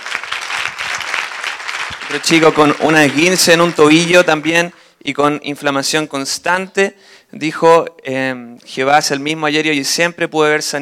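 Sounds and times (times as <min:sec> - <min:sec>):
audience applauding: 0:00.0 - 0:04.8
speech: 0:02.1 - 0:10.8.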